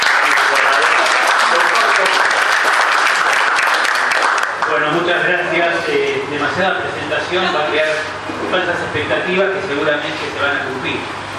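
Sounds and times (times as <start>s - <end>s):
loud applause: 0.0s - 5.2s
speech: 5.1s - 11.2s.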